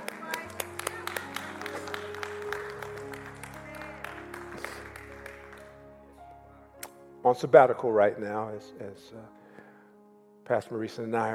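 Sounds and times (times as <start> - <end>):
a few people clapping: 0.0 - 5.9
speech: 7.3 - 9.4, 10.5 - 11.3.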